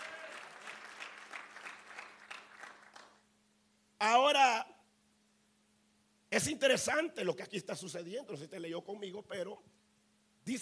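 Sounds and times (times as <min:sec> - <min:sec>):
audience applause: 0:00.0 - 0:03.2
speech: 0:04.0 - 0:04.7, 0:06.4 - 0:09.8.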